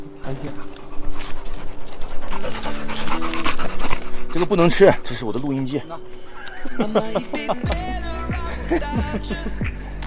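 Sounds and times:
dog panting: 0.0 - 6.4
speech: 0.3 - 0.8, 4.4 - 8.1, 8.7 - 9.7
laughter: 6.2 - 9.9.

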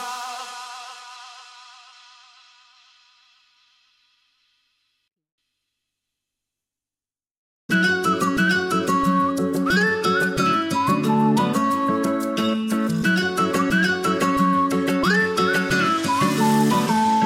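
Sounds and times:
pop backing track: 7.7 - 17.2
whistled melody: 7.7 - 17.2.

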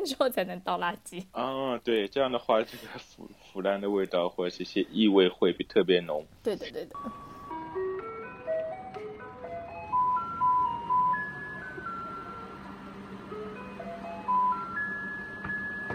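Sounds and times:
speech: 0.0 - 7.3
garbage truck low engine rumble: 7.0 - 15.9
garbage truck playing ice-cream-van style chiming melody: 7.0 - 15.9.

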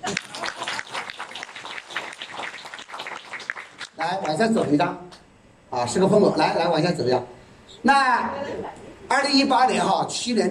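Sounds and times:
crowd applauding: 0.0 - 4.5
speech: 4.0 - 5.1, 5.8 - 10.4.

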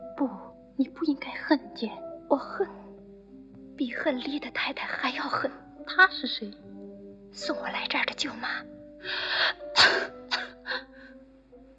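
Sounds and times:
speech: 0.2 - 2.8, 3.8 - 6.7, 7.3 - 10.9
person coughing: 9.8 - 10.8.

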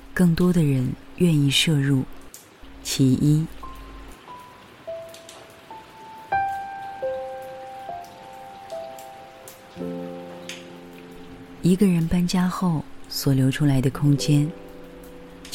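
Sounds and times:
steady rain: 0.0 - 15.5
speech: 0.2 - 2.2, 2.8 - 3.6, 11.7 - 14.6
soft, sustained melodic notes with chords: 3.6 - 12.1, 14.0 - 15.5.

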